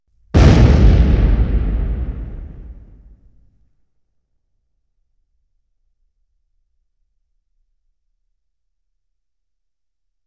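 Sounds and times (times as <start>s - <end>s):
explosion: 0.4s - 3.3s.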